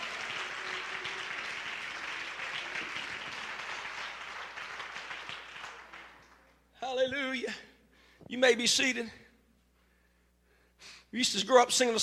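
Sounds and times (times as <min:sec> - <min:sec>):
audience clapping: 0:00.0 - 0:07.0
speech: 0:07.0 - 0:07.7, 0:08.3 - 0:09.2, 0:11.1 - 0:12.0.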